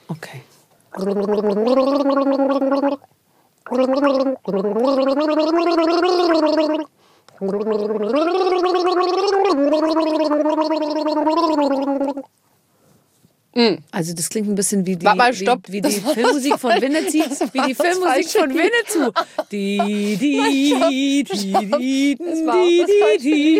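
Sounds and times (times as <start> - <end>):
speech: 0.1 - 12.4, 13.6 - 23.5
person gargling a song: 0.9 - 3.1, 3.7 - 12.3, 19.6 - 23.5
laughter: 15.8 - 23.5.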